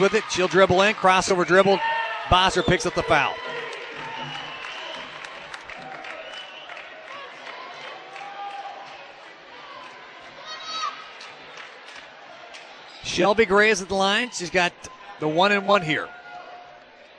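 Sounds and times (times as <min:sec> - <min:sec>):
speech: 0:00.0 - 0:03.5, 0:13.2 - 0:16.2
basketball crowd clapping: 0:00.0 - 0:10.4, 0:11.1 - 0:12.8.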